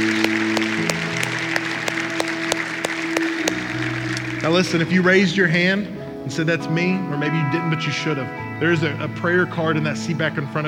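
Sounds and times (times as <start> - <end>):
audience applause: 0.0 - 5.1
speech: 4.5 - 10.6.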